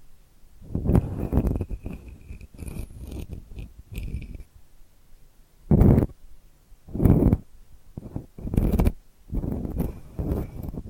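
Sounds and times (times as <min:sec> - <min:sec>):
delicate scratching strokes: 0:00.7 - 0:04.5, 0:05.7 - 0:06.2, 0:06.9 - 0:10.8.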